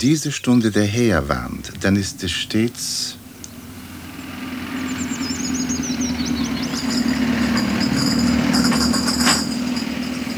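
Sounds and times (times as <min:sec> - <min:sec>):
speech: 0:00.0 - 0:03.2
Coca-Cola delivery truck engine passing around a curve in Monterey: 0:00.0 - 0:10.3
high bird chirps: 0:00.0 - 0:10.3
rattling clatter: 0:00.0 - 0:10.3.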